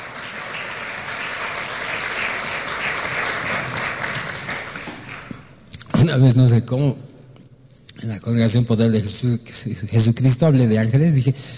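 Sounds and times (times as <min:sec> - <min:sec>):
crowd applauding: 0:00.0 - 0:05.5
speech: 0:06.0 - 0:07.1, 0:08.0 - 0:11.5.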